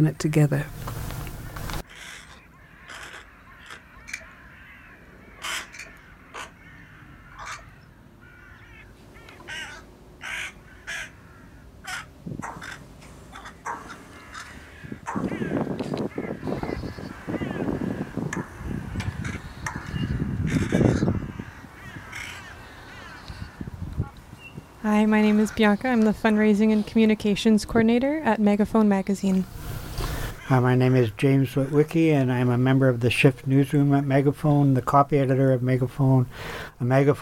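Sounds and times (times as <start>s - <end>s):
speech: 0.0s - 0.8s, 25.6s - 29.6s, 30.5s - 37.2s
crows cawing: 1.8s - 24.2s, 29.7s - 31.8s, 36.3s - 36.8s.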